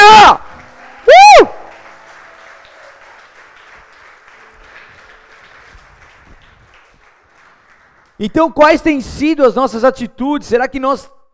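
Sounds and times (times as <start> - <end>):
audience applauding loudly: 0.0 - 8.2
speech: 8.2 - 11.2.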